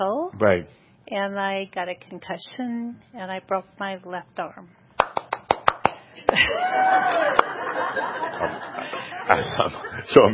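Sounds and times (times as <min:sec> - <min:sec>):
speech: 0:00.0 - 0:04.8, 0:06.2 - 0:10.3
one person clapping: 0:05.0 - 0:07.6
chuckle-like murmur: 0:08.4 - 0:10.1.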